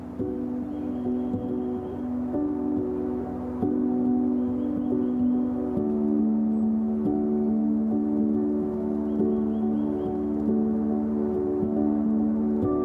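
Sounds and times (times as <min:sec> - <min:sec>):
soft quiet wind: 0:00.0 - 0:12.8
string music with long sustained notes: 0:00.0 - 0:12.8
faint bird chirps: 0:00.2 - 0:02.9, 0:03.6 - 0:07.2, 0:08.8 - 0:11.0.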